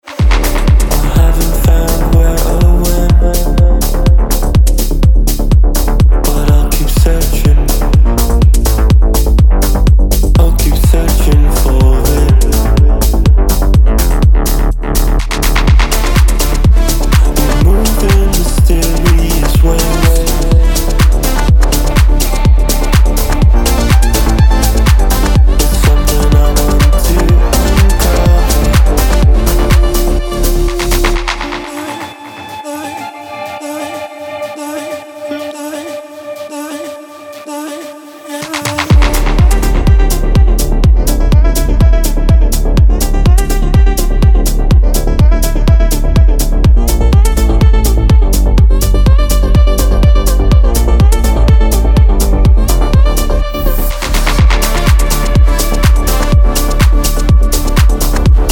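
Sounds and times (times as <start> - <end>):
electronic music: 0.0 - 58.5.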